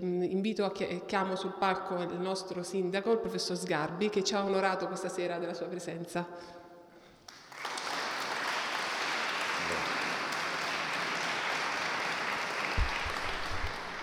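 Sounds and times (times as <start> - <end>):
speech: 0.0 - 6.6
crowd applauding: 7.3 - 14.0.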